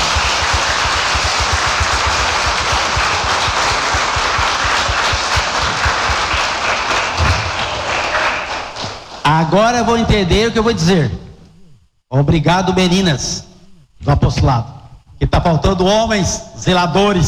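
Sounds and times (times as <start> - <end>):
crowd applause: 0.0 - 9.3
speech: 9.3 - 11.2, 12.1 - 17.2.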